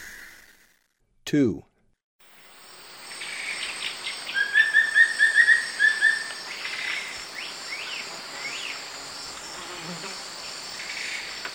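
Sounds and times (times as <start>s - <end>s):
wing-barred piprites calls: 3.0s - 8.8s.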